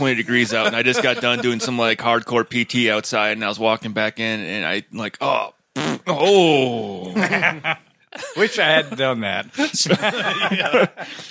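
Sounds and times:
laughter: 0.0s - 2.0s, 7.0s - 11.2s
speech: 0.0s - 11.2s
voice imitating a liquid fart: 5.3s - 6.7s.

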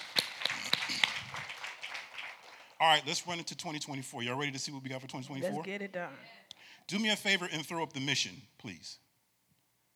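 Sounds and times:
audience applause: 0.0s - 3.5s
speech: 2.8s - 9.0s.

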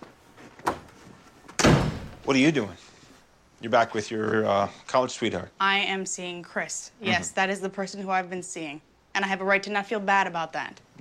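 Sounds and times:
door swinging shut: 0.6s - 2.3s
speech: 2.3s - 2.8s, 3.6s - 10.9s.

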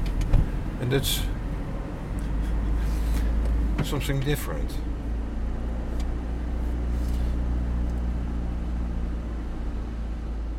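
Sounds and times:
car driving along a canal in Almere: 0.0s - 10.5s
speech: 0.9s - 1.4s, 3.8s - 4.9s.

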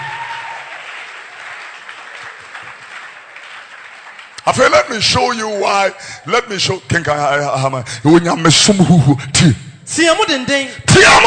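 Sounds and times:
crowd clapping: 0.0s - 5.7s
speech: 4.5s - 11.2s.

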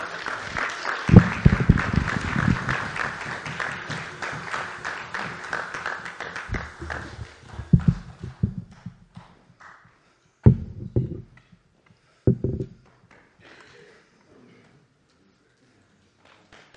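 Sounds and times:
people cheering and whooping: 0.0s - 8.4s
audience applause: 0.0s - 8.7s.

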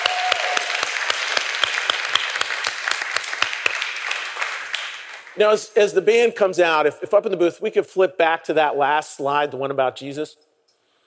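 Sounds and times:
crowd applause: 0.0s - 5.6s
speech: 5.4s - 10.4s.

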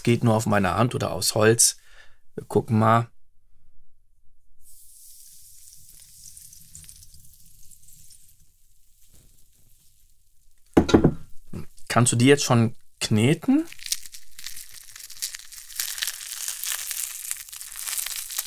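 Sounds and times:
speech: 0.0s - 1.8s, 2.4s - 3.1s, 12.0s - 13.8s
water pouring over popcorn: 4.8s - 10.8s, 13.7s - 18.4s.

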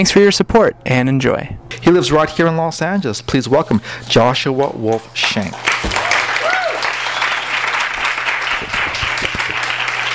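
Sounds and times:
speech: 0.0s - 6.0s
audience applause: 5.2s - 10.1s.

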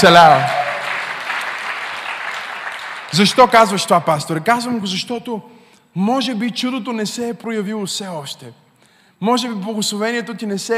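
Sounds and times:
speech: 0.0s - 0.6s, 3.1s - 8.6s, 9.2s - 10.7s
audience applauding: 0.0s - 3.4s.

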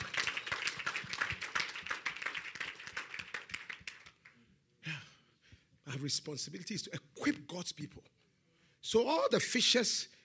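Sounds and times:
audience clapping: 0.0s - 4.4s
speech: 6.0s - 8.2s, 8.8s - 10.2s.

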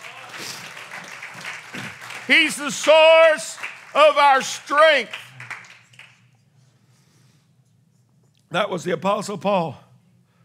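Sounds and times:
audience clapping hands in praise: 0.0s - 6.4s
speech: 2.3s - 5.2s, 8.5s - 9.8s.

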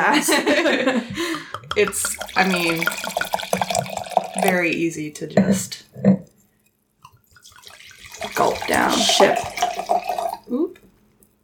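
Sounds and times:
speech: 0.1s - 3.2s, 4.4s - 6.2s, 8.8s - 9.5s
wine pouring into a glass: 1.4s - 5.0s, 7.2s - 10.9s.

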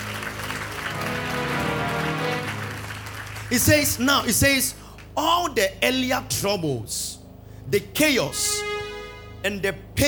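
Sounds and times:
audience clapping: 0.0s - 4.4s
low musical hum: 0.0s - 10.0s
speech: 3.5s - 8.8s, 9.4s - 10.0s.

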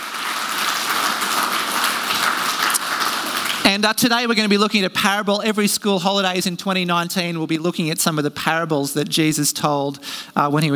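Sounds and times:
audience applause: 0.0s - 3.8s
speech: 3.7s - 10.7s.

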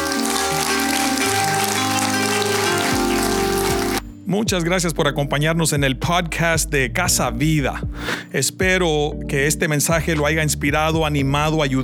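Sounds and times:
audience applause: 0.0s - 4.0s
sustained low keyboard chords: 0.0s - 4.3s
speech: 4.3s - 11.8s.

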